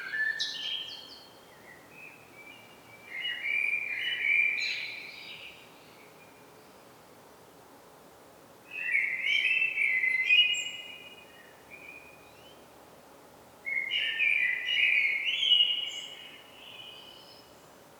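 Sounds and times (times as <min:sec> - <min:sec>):
common blackbird Turdus merula song: 0:00.0 - 0:06.8, 0:08.7 - 0:12.6, 0:13.7 - 0:17.6.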